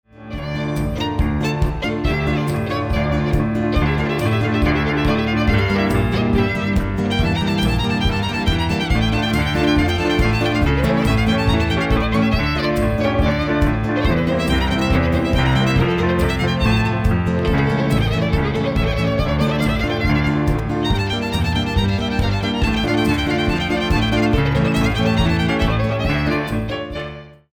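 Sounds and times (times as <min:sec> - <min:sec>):
csardas folk dance music: 0:00.3 - 0:27.2.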